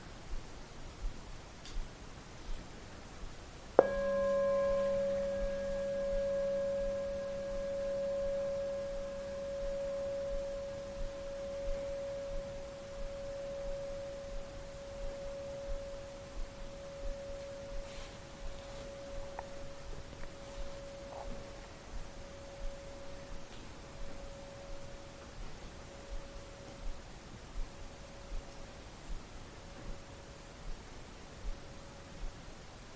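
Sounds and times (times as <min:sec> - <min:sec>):
soft hiss: 0:00.0 - 0:32.9
bell ringing: 0:03.8 - 0:25.2.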